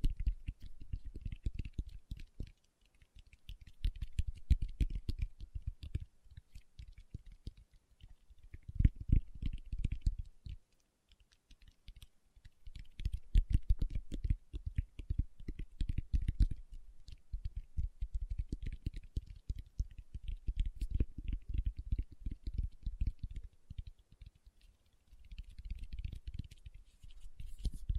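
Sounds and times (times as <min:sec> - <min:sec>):
fingertips tapping: 0:00.0 - 0:27.9.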